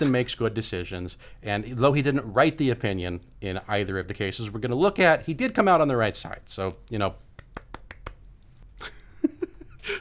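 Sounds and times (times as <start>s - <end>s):
speech: 0.0s - 7.2s
golf clap: 7.4s - 8.2s.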